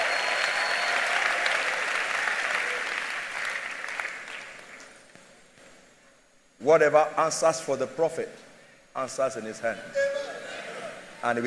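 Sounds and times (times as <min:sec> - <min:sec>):
audience applauding: 0:00.0 - 0:04.8
speech: 0:06.6 - 0:10.2, 0:11.2 - 0:11.4.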